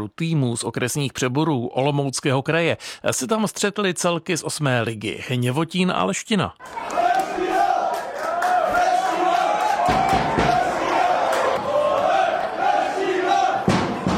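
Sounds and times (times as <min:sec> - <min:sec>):
speech: 0:00.0 - 0:07.5
football fans cheering at stadium: 0:06.6 - 0:14.1
sharp claps or bangs: 0:07.9 - 0:14.1.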